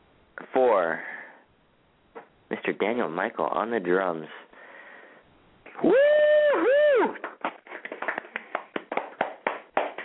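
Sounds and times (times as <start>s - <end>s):
speech: 0.6s - 1.2s, 2.6s - 4.5s, 5.8s - 6.1s
studio audience clapping: 7.0s - 10.0s.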